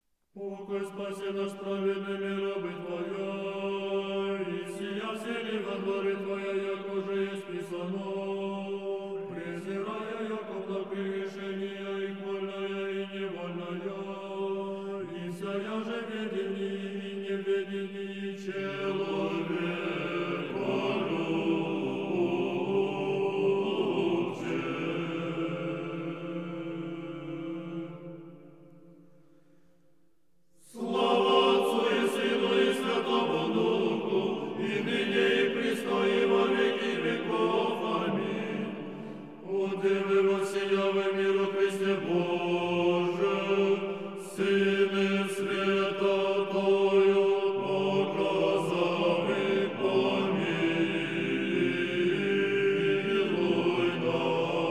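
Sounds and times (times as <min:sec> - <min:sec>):
sessional hymn in tone 5: 0:00.3 - 0:29.8, 0:30.6 - 0:54.6.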